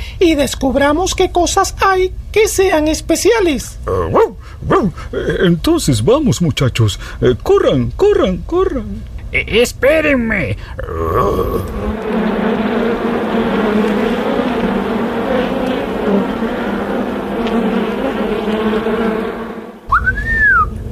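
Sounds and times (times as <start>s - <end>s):
speech: 0.2s - 12.3s
many bees buzzing around a beehive: 11.4s - 20.8s
quick rising whistle: 19.8s - 20.8s
short whistle: 19.9s - 20.7s.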